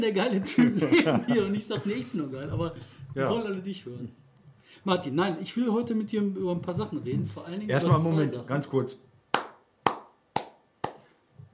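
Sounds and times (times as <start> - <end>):
speech: 0.0 - 4.2, 4.8 - 9.1
laughter: 0.4 - 2.3
crowd applause: 9.3 - 11.1.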